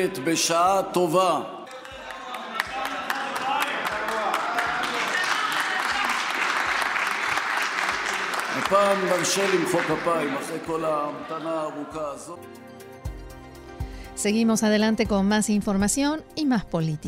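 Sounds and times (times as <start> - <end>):
speech: 0.0 - 1.7, 8.6 - 12.8, 14.2 - 17.0
audience clapping: 1.6 - 11.8.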